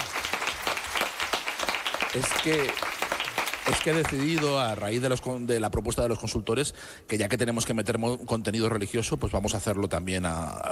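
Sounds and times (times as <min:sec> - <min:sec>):
crowd applause: 0:00.0 - 0:04.8
speech: 0:02.1 - 0:02.9, 0:03.7 - 0:10.7.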